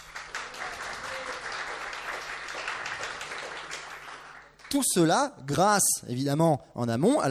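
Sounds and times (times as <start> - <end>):
audience clapping: 0.0 - 5.0
speech: 4.7 - 7.2.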